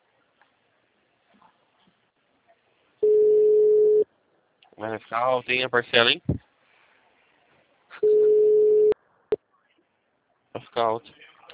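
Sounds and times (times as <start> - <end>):
telephone busy signal: 3.0 - 4.0, 8.0 - 9.0
speech: 4.8 - 6.4, 10.8 - 11.2.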